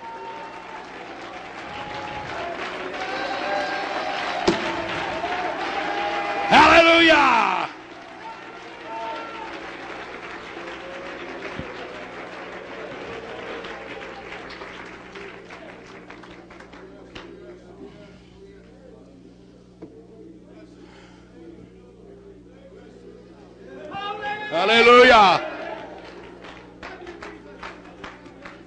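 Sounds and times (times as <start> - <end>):
audience clapping hands: 0.0 - 17.6, 24.5 - 28.6.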